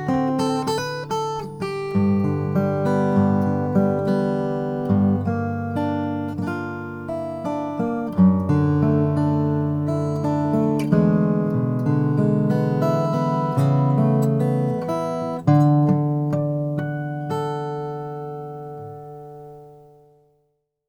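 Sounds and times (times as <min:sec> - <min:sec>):
parlor acoustic guitar with redwood top: 0:00.0 - 0:20.5.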